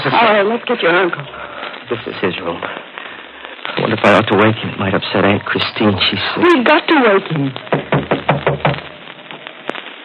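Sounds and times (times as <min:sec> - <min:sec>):
speech: 0:00.0 - 0:02.8, 0:03.9 - 0:08.9
knocking on a door: 0:07.7 - 0:08.8.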